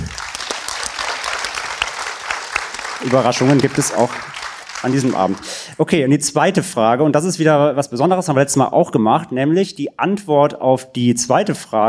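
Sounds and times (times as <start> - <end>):
audience clapping at a live evening show: 0.0 - 5.7
speech: 3.0 - 11.8.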